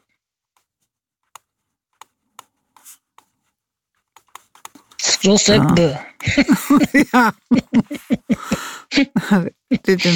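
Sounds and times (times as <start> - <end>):
pen scratching on paper: 2.0 - 5.9
speech: 5.2 - 10.1
laughter: 5.4 - 10.1.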